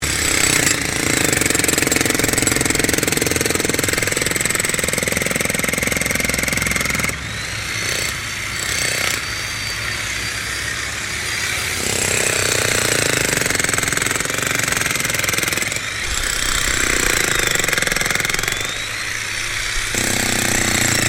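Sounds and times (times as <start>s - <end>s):
Bosch electric jackhammer digging bitumen: 0.0s - 21.0s.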